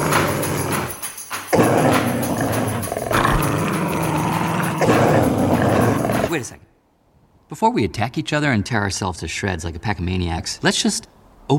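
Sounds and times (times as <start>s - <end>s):
dogs growling and snarling in a face-off in an animated film: 0.0s - 6.5s
speech: 6.4s - 6.6s, 7.5s - 11.5s.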